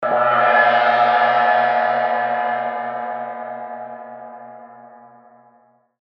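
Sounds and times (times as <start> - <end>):
Tibetan chai cymbal: 0.0 - 5.6.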